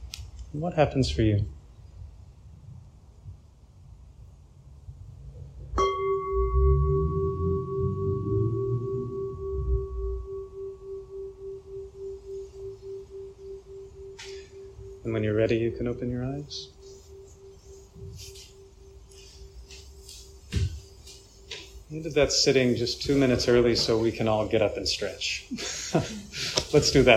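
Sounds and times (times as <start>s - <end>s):
speech: 0.5s - 1.6s, 15.5s - 16.8s, 22.0s - 27.1s
meditation bell ringing: 5.8s - 24.2s.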